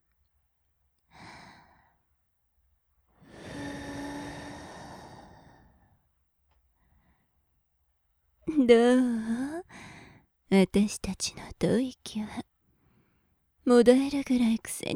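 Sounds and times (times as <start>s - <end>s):
succubus breathing: 1.1s - 2.1s, 3.1s - 6.1s, 6.8s - 7.4s, 9.7s - 10.4s, 12.7s - 13.5s
succubus whispering: 8.5s - 9.7s, 10.5s - 12.5s, 13.7s - 14.9s.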